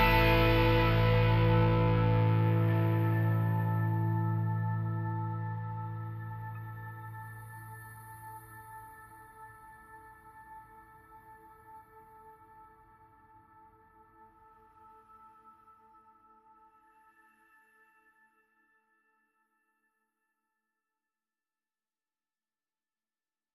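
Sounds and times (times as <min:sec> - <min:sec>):
music mix without drums, sound effects or choir: 0:00.0 - 0:08.6.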